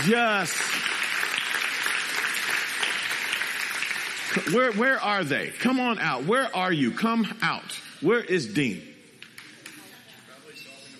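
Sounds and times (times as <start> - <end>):
speech: 0.0 - 0.9, 4.3 - 8.9
crowd clapping: 0.0 - 5.9.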